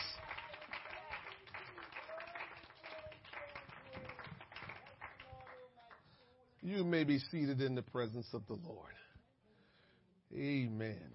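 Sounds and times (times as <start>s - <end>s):
people clapping: 0.0s - 7.0s
speech: 6.6s - 9.1s, 10.3s - 11.1s.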